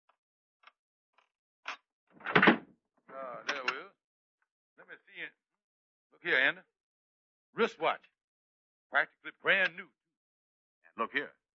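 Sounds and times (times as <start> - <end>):
locked dresser drawer being forced and pulled open: 2.2 - 2.6
speech: 6.2 - 6.7, 7.6 - 8.1, 8.9 - 10.0, 11.0 - 11.4.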